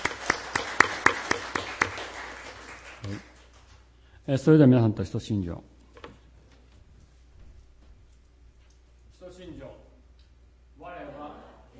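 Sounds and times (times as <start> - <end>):
sparse welcoming claps from an audience: 0.0 - 3.8
speech: 3.1 - 3.3, 4.3 - 5.7.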